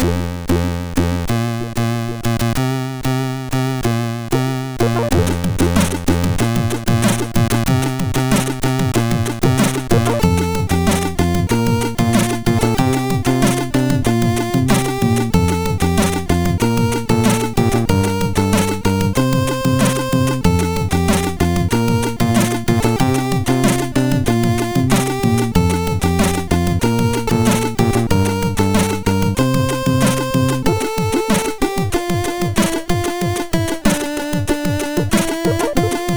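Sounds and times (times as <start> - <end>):
MOS6581R4 chip tune: 0.0 - 36.1.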